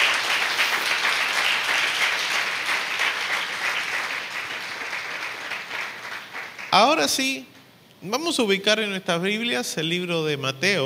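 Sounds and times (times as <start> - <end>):
audience applauding: 0.0 - 7.2
speech: 6.8 - 10.8.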